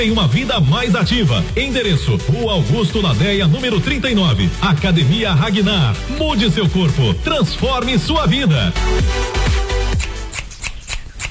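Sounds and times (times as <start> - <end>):
speech: 0.0 - 9.6
scissors snipping: 10.0 - 11.3.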